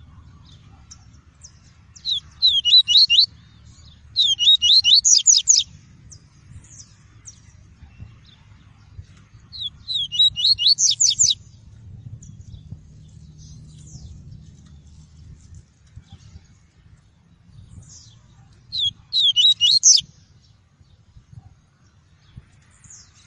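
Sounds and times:
double-collared seedeater whistling song: 2.0 - 3.3, 4.1 - 5.7, 9.5 - 11.4, 18.7 - 20.1
low rumble: 5.7 - 18.8.

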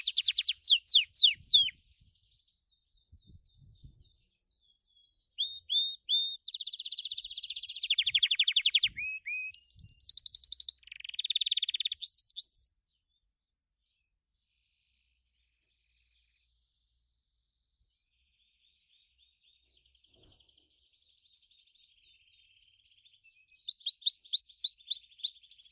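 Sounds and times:
Gloster canary singing: 0.0 - 2.2, 3.7 - 12.8, 22.6 - 25.6.

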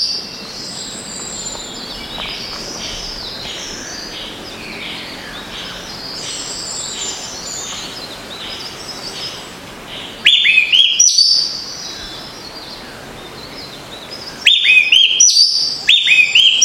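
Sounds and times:
green oriole singing whistled notes: 10.2 - 11.6, 14.4 - 16.6.

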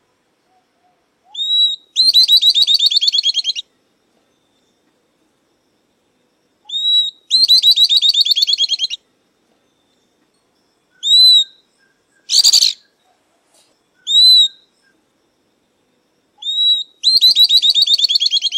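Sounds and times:
southern beardless-tyrannulet song: 1.3 - 3.7, 6.7 - 9.0, 11.0 - 13.0, 13.9 - 15.0, 16.4 - 18.5.

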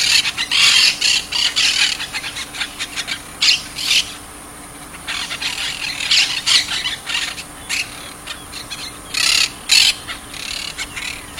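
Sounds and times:
monk parakeet chattering: 0.0 - 4.2, 4.9 - 11.3.

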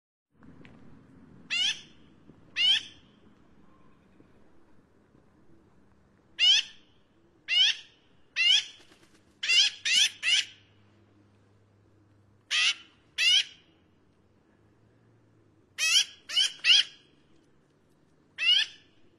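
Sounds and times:
Black-billed magpie Pica hudsonia harsh nasal squawks: 6.4 - 6.8, 7.5 - 8.8, 9.4 - 10.6, 12.5 - 13.6, 15.8 - 17.0, 18.4 - 18.9.

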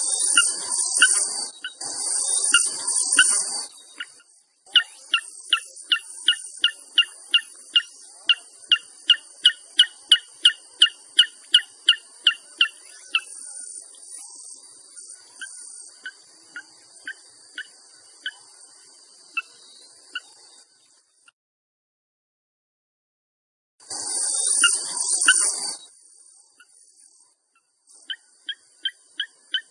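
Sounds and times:
Inaccessible Island rail calling bright high two-toned chirps: 0.0 - 18.5, 24.0 - 25.8, 27.6 - 29.6.

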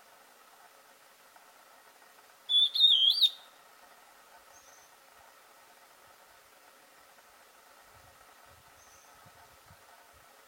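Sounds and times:
antbird song: 2.5 - 3.5, 8.8 - 9.1.

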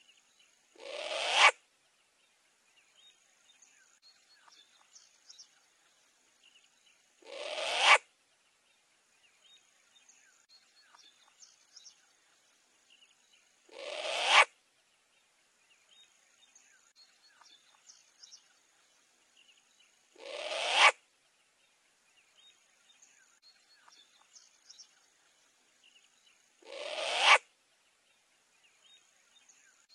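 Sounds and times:
short-eared owl screeching: 0.8 - 1.6, 7.2 - 8.0, 13.7 - 14.5, 20.2 - 21.0, 26.6 - 27.4.

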